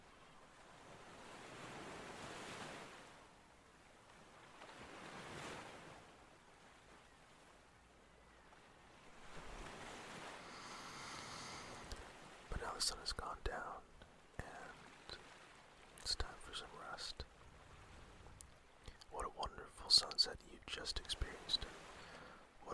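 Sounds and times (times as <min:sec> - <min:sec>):
ocean waves breaking on a sandy shore: 0:00.0 - 0:22.7
speech: 0:12.8 - 0:13.7.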